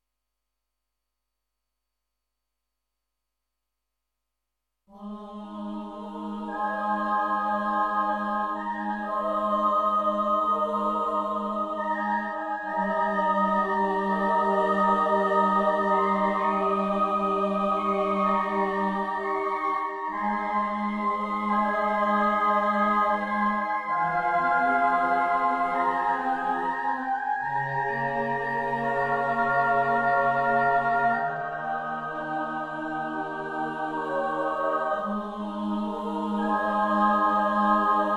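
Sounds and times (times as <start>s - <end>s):
choir singing: 4.9s - 38.1s.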